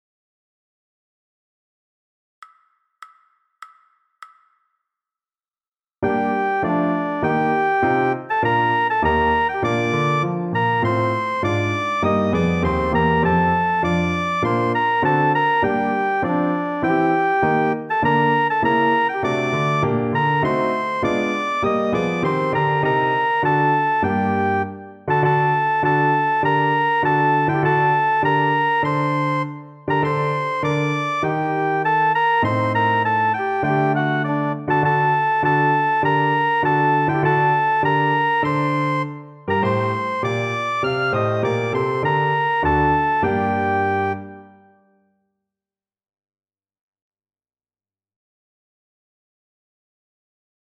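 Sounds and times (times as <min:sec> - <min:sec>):
trumpet: 0:06.0 - 0:44.6.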